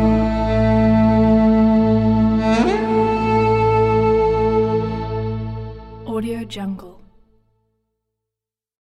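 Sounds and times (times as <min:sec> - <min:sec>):
duduk solo: 0:00.0 - 0:06.0.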